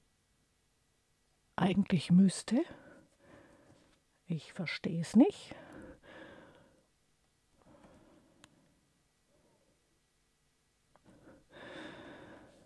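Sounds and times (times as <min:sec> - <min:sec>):
speech: 0:01.6 - 0:02.8, 0:04.3 - 0:05.6
heavy breathing after a rushed bike ride: 0:02.8 - 0:03.9, 0:05.6 - 0:06.9, 0:11.0 - 0:12.6.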